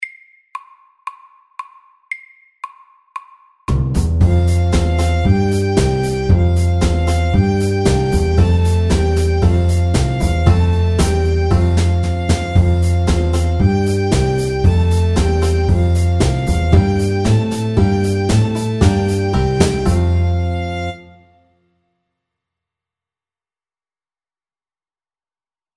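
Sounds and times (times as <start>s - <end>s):
square dance music: 3.8s - 21.2s.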